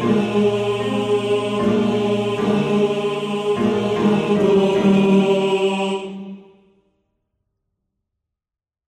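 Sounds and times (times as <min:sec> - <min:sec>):
male choir bass voices: 0:00.0 - 0:06.5.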